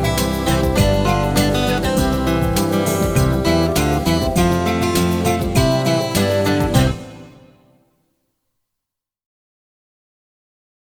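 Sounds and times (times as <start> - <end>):
instrumental music: 0.0 - 7.8.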